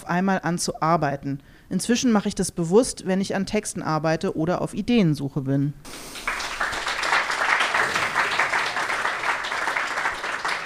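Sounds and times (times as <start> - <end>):
speech: 0.1 - 6.4
small audience clapping politely: 5.9 - 10.6.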